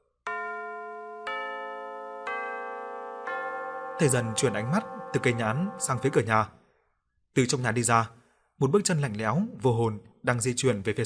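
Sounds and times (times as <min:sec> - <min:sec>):
pendulum clock striking three: 0:00.3 - 0:06.4
speech: 0:04.0 - 0:06.6, 0:07.4 - 0:11.0.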